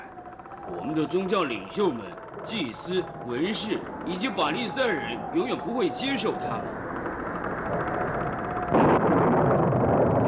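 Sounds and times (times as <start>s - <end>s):
storm rumble: 0.0s - 10.2s
speech: 0.7s - 6.8s
thunderclap: 7.7s - 10.2s.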